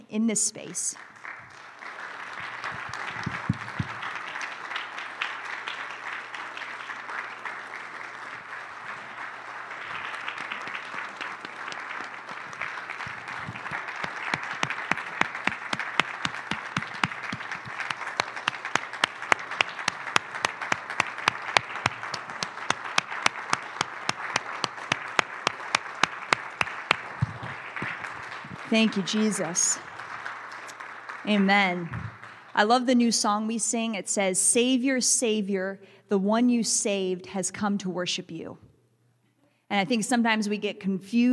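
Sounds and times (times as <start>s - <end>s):
speech: 0.1s - 1.1s, 28.7s - 29.9s, 31.3s - 32.0s, 32.6s - 38.6s, 39.7s - 41.3s
audience applause: 1.0s - 32.6s.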